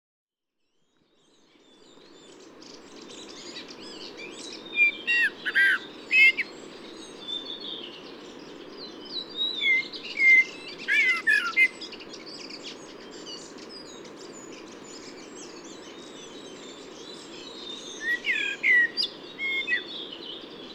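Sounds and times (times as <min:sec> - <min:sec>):
Eurasian blackbird singing at a camp in Ísafjörður: 0:00.6 - 0:20.7.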